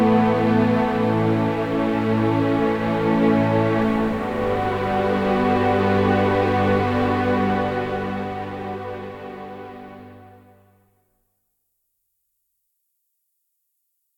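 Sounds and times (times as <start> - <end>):
ambient strings stem: 0.0 - 10.6.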